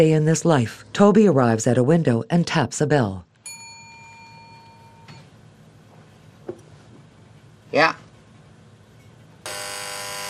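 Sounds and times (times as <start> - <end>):
speech: 0.0 - 3.3, 7.7 - 8.0
door buzzer of remote door release: 9.4 - 10.2.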